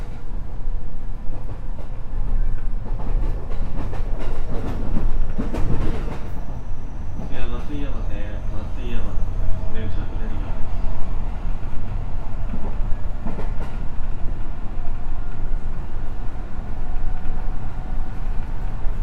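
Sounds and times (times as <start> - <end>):
JR West 207 series electric train rumbling on Gakkentoshi Line: 0.0 - 19.0
train clacks and rattles: 2.8 - 6.3, 12.4 - 14.0.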